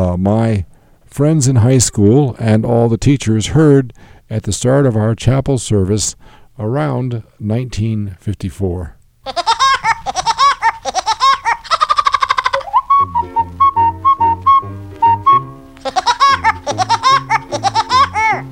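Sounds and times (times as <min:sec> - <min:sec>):
speech: 0:00.1 - 0:09.5
cartoon woodpecker laugh: 0:09.3 - 0:12.9, 0:15.8 - 0:18.5
bouncy cartoon song tune over thumping bass notes: 0:12.6 - 0:18.5.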